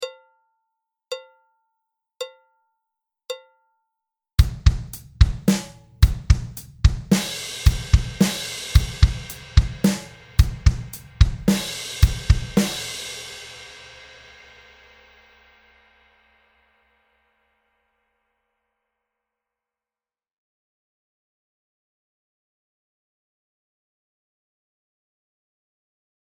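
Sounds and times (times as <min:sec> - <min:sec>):
drum beat: 0:04.4 - 0:14.0.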